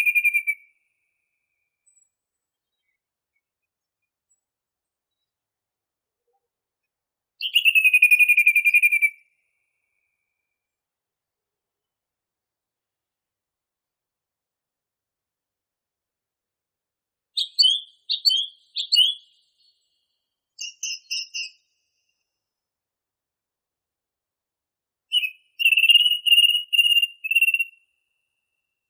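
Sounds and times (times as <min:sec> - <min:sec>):
song thrush trilling song: 0:00.0 - 0:00.8, 0:07.4 - 0:09.3, 0:17.4 - 0:20.0, 0:20.6 - 0:21.8, 0:25.1 - 0:27.9.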